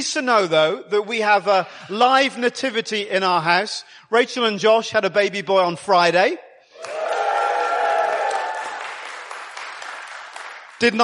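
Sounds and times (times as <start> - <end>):
speech: 0.0 - 6.9, 10.8 - 11.0
round of applause from a crowd: 6.8 - 10.9.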